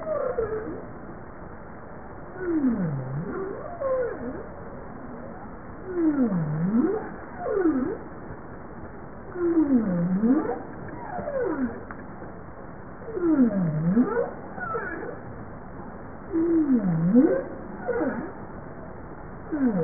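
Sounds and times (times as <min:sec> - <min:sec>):
bowhead whale moan: 0:02.4 - 0:04.5, 0:05.8 - 0:08.1, 0:09.3 - 0:11.9, 0:13.1 - 0:15.2, 0:16.3 - 0:18.4, 0:19.5 - 0:19.8.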